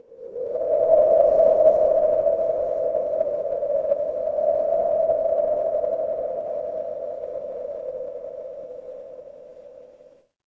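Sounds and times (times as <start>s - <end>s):
wind: 0.0s - 10.4s.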